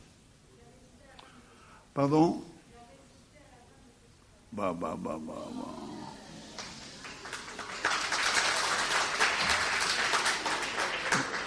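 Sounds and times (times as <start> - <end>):
speech: 2.0 - 2.5, 4.6 - 5.8
audience applause: 6.2 - 11.4.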